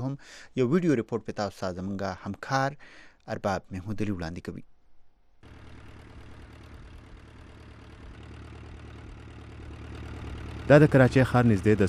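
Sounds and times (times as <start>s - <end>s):
speech: 0.2s - 4.7s, 10.7s - 11.8s
boat engines approaching an island of dogs near Karachi: 5.4s - 11.8s.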